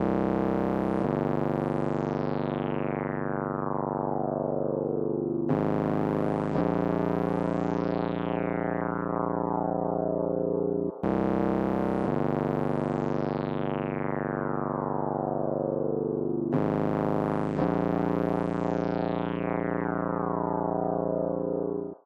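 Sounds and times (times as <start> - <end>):
resonant Juno synthesizer: 1.1 - 22.0.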